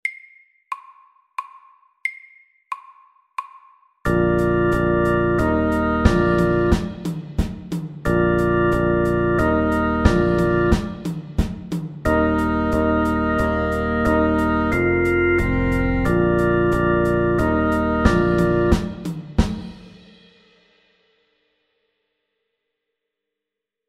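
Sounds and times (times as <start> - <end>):
slow fusion music: 4.1 - 19.5.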